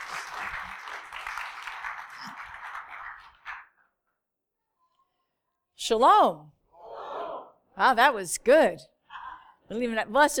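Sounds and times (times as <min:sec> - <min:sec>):
crowd applause: 0:00.0 - 0:03.7
speech: 0:05.9 - 0:06.6, 0:07.8 - 0:08.9, 0:09.7 - 0:10.3.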